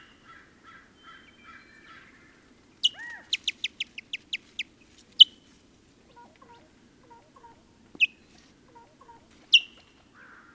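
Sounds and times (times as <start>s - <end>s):
white-tailed kite whistling calls: 2.8s - 3.8s, 6.1s - 9.9s.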